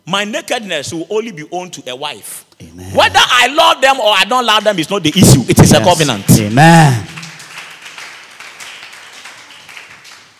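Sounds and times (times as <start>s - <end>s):
speech: 0.1s - 7.0s
audience clapping: 5.6s - 10.3s.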